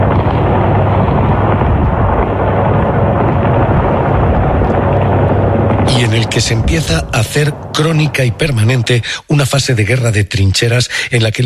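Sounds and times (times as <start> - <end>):
bombs exploding in the Strait of Hormuz: 0.0 - 9.1
speech: 6.1 - 11.4.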